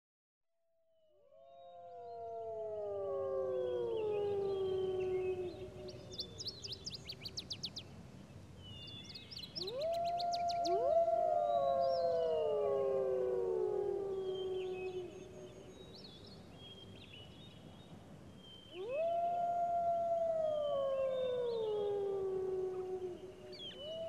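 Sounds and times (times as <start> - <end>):
wolf howling: 1.5 - 6.1, 9.6 - 15.5, 18.8 - 24.0.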